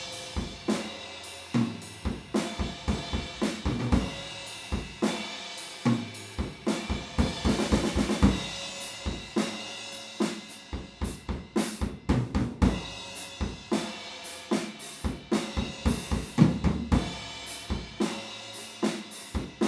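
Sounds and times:
drums recorded with PZM omni microphone: 0.0 - 19.6.

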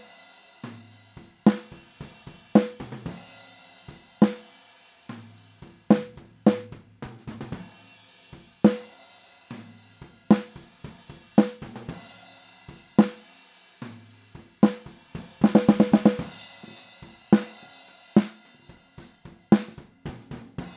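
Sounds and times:
snare drums recorded with SM57 microphone: 0.0 - 20.7.

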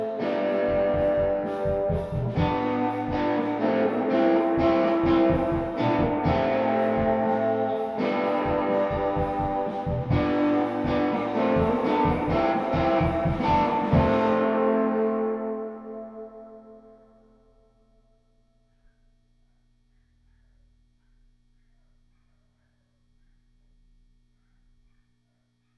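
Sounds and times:
guitar playing in a room: 0.0 - 17.1.

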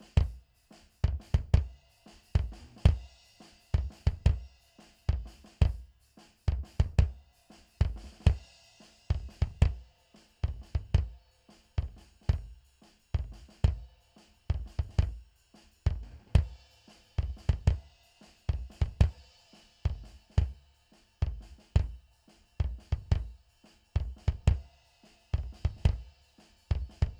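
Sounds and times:
mono bass drum: 0.0 - 3.1, 3.8 - 4.4, 5.1 - 5.9, 6.5 - 7.2, 7.8 - 8.4, 9.1 - 9.8, 10.4 - 11.2, 11.8 - 12.6, 13.2 - 13.9, 14.5 - 15.2, 15.9 - 16.6, 17.2 - 17.9, 18.5 - 19.2, 19.9 - 20.6, 21.2 - 23.4, 24.0 - 24.7, 25.4 - 26.1, 26.7 - 27.1.

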